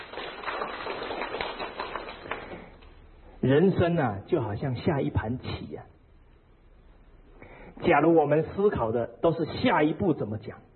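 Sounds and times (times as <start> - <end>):
audience applause: 0.0 - 2.8
speech: 3.4 - 6.0, 7.8 - 10.7.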